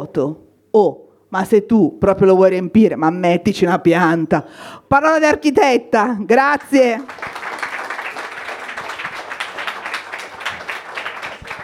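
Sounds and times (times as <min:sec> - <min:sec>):
speech: 0:00.1 - 0:07.3
audience applause at a comedy show: 0:07.0 - 0:11.6.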